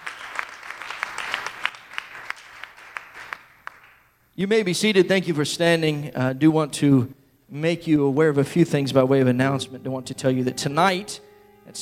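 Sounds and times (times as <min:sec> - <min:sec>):
audience applause: 0:00.0 - 0:04.0
speech: 0:04.4 - 0:11.8.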